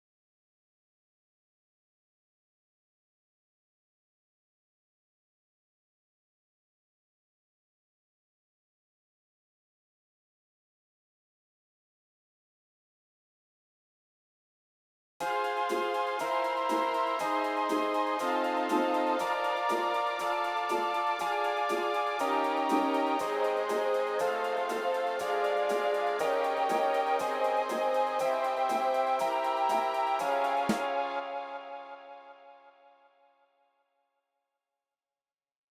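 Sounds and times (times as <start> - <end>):
mellotron at 120 BPM: 15.2 - 32.7.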